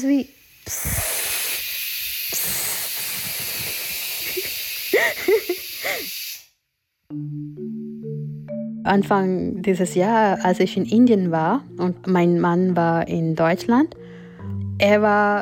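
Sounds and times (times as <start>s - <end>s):
speech: 0.0s - 1.1s, 7.1s - 7.8s, 8.9s - 14.0s, 14.8s - 15.4s
pressure cooker hissing steam: 0.0s - 6.6s
low tones: 7.1s - 15.4s.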